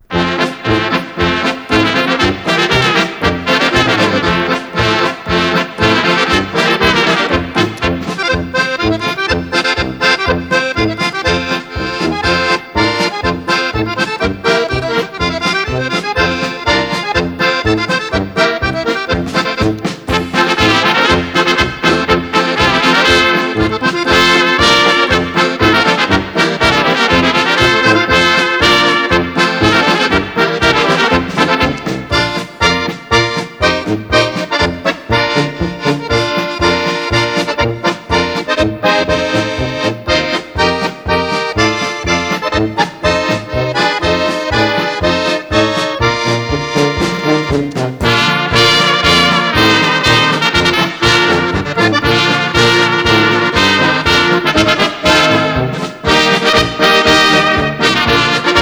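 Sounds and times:
schmaltzy polka music: 0.0 - 58.6.

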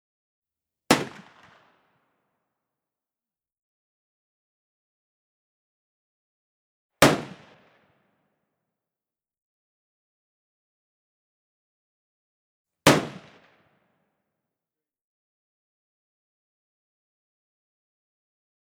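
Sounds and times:
single musket gunshot: 0.9 - 1.7, 7.0 - 7.8, 12.9 - 13.5.

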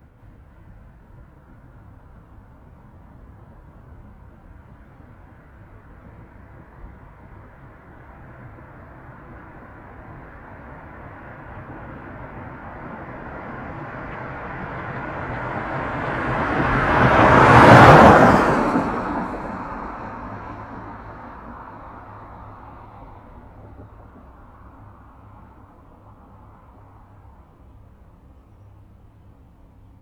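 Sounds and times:
car passing fast in a desert: 9.8 - 24.0.

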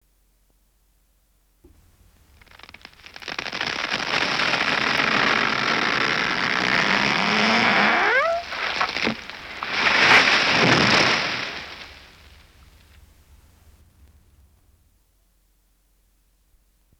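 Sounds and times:
tree falling: 1.7 - 13.3.

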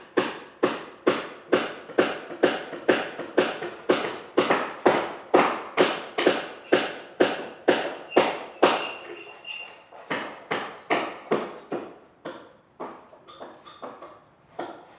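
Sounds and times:
hammers in home construction: 0.1 - 14.9
saws in home construction: 7.7 - 10.8.

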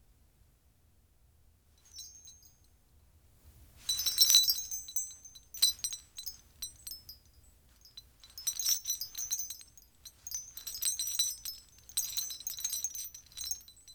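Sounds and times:
tiny ceramic bells tinkling: 1.8 - 2.6, 3.8 - 13.9.

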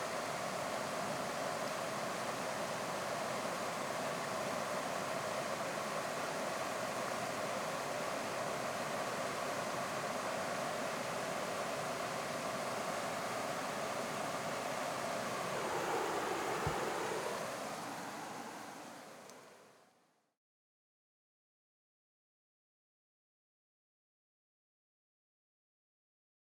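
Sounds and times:
Keshena Falls waterfall from top: 0.0 - 19.8.

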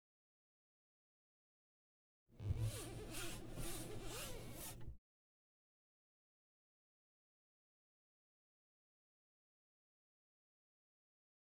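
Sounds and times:
wiping frosted glass: 2.4 - 5.0.

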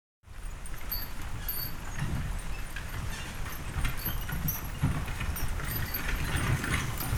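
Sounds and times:
horse-drawn wagon passing: 0.3 - 7.1.

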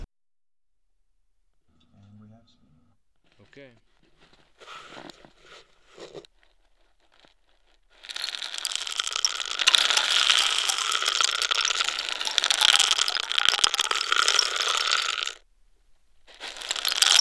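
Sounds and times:
African rain stick: 7.1 - 15.4, 16.3 - 17.2.

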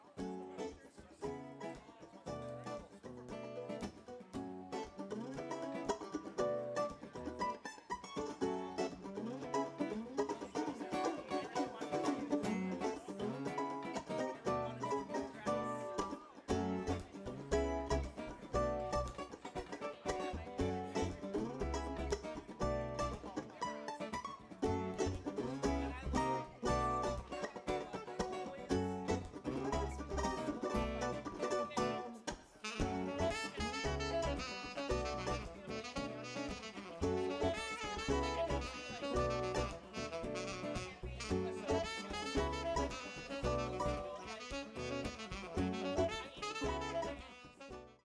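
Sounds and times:
music: 0.0 - 48.0.

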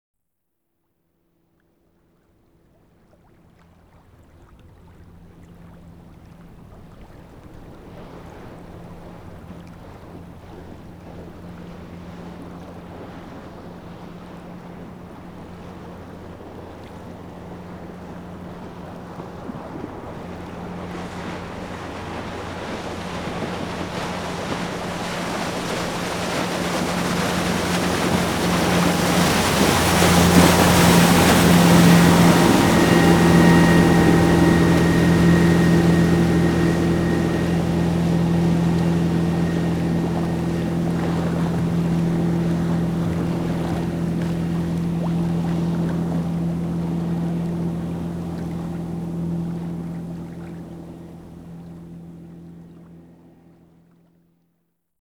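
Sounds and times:
water: 0.9 - 54.8
fishing boat passing by on water: 1.5 - 54.4.

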